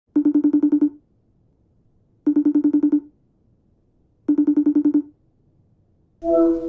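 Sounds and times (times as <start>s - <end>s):
FaceTime video call ringtone: 0.2s - 1.0s, 2.3s - 3.1s, 4.3s - 5.2s, 6.2s - 6.6s.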